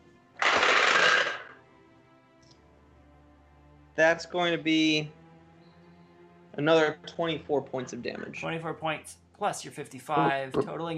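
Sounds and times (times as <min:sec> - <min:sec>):
three ten-sided dice rolling: 0:00.4 - 0:01.6
speech: 0:04.0 - 0:05.2, 0:06.6 - 0:10.9.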